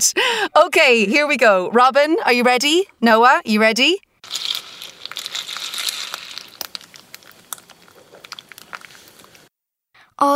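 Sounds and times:
speech: 0:00.0 - 0:04.5, 0:10.2 - 0:10.3
breakfast cereal rustling: 0:04.2 - 0:09.5.

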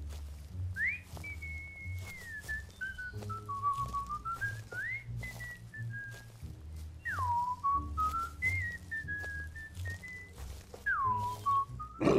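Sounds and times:
rising and falling whistles: 0:00.8 - 0:06.3, 0:07.0 - 0:12.0.

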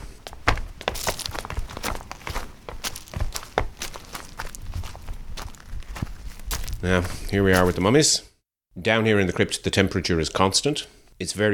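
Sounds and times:
many footsteps going down uneven steps into the limestone crypt of St. Mikan's: 0:00.0 - 0:08.0
constant rustling background: 0:00.0 - 0:08.2
speech: 0:06.8 - 0:11.5.

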